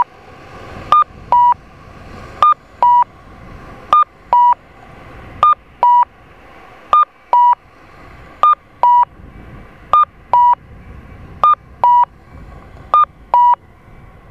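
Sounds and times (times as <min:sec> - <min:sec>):
Kyosan LTA-BMS-2 audible crossing signal cuckoo chirps in Saidaijikami, Okayama: 0:00.9 - 0:01.6, 0:02.4 - 0:03.1, 0:03.9 - 0:04.6, 0:05.4 - 0:06.1, 0:06.9 - 0:07.6, 0:08.4 - 0:09.1, 0:10.0 - 0:10.6, 0:11.4 - 0:12.1, 0:13.0 - 0:13.6.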